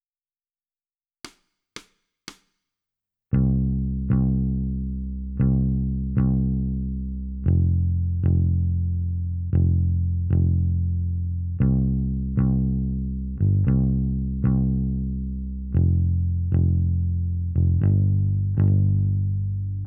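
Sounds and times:
bass: 3.3 - 19.8.

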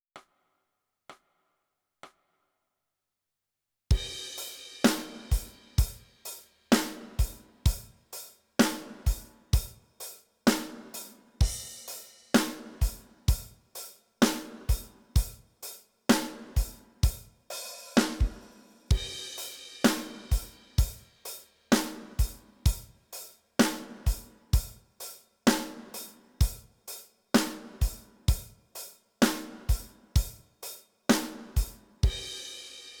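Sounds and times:
drums: 3.9 - 32.9.

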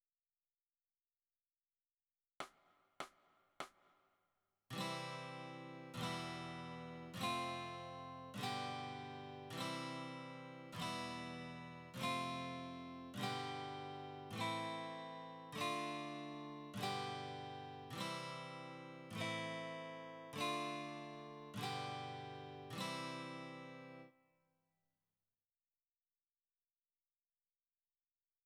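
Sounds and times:
guitar: 4.7 - 24.2.

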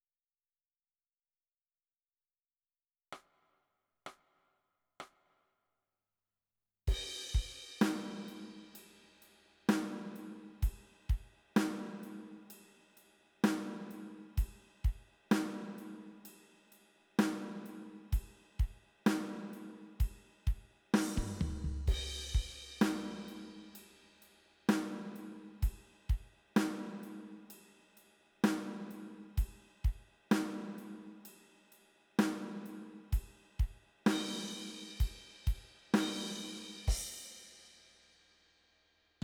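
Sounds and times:
drums: 6.9 - 38.1.

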